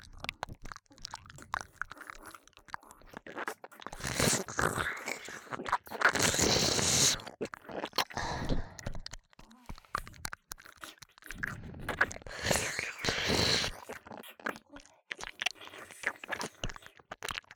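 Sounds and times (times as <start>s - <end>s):
ear licking: 0.2s - 17.5s
sucking sounds: 4.0s - 7.3s, 8.0s - 9.1s, 11.4s - 14.0s.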